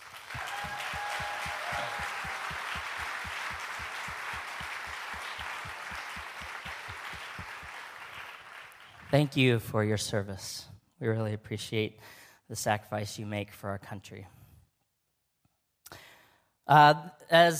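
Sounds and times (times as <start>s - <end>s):
crowd round of applause: 0.0s - 9.3s
speech: 9.1s - 14.4s, 16.7s - 17.5s.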